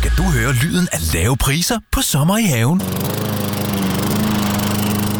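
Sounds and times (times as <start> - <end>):
speech: 0.2 - 3.7
lawn mower running: 2.8 - 5.1.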